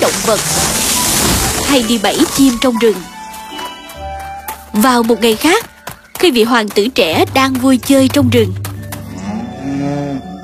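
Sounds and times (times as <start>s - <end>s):
speech: 0.3s - 0.6s, 1.7s - 3.2s, 4.8s - 8.6s
young wild ox crying in pain: 9.1s - 10.4s.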